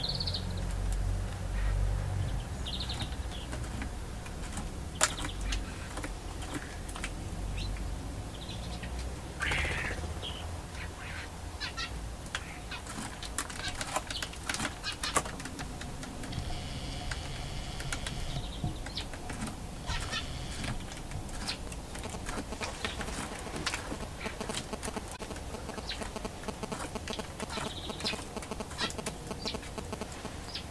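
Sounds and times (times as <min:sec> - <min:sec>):
middle spotted woodpecker: 0:00.0 - 0:30.6.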